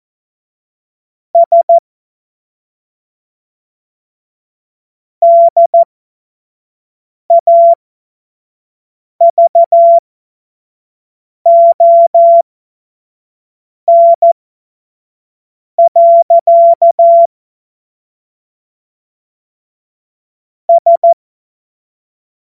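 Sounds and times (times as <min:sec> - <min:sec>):
Morse code course tones: 0:01.4 - 0:01.8, 0:05.3 - 0:05.9, 0:07.3 - 0:07.8, 0:09.2 - 0:10.0, 0:11.5 - 0:12.5, 0:13.9 - 0:14.3, 0:15.8 - 0:17.3, 0:20.7 - 0:21.2.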